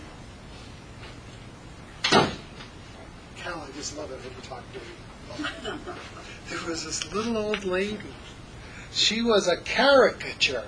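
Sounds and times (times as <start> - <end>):
door closing with soft thud: 2.0 - 2.5
speech: 3.8 - 10.6.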